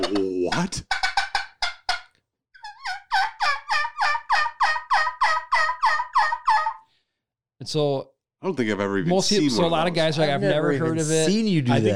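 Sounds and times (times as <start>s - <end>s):
speech: 0.0s - 1.0s, 7.7s - 11.9s
turkey yelps from a worn latex diaphragm mouth call: 0.8s - 6.9s.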